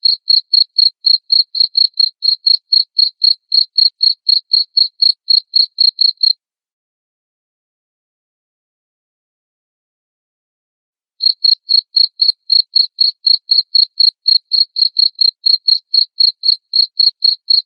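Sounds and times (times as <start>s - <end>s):
cricket chirping: 0.0s - 6.4s, 11.2s - 17.6s.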